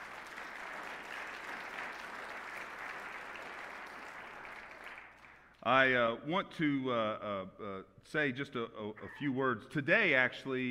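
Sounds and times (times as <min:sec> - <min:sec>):
audience applause: 0:00.0 - 0:05.5
speech: 0:05.6 - 0:10.6.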